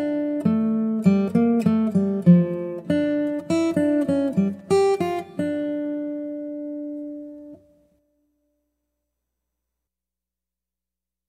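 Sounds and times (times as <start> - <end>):
guitar: 0.0 - 8.6.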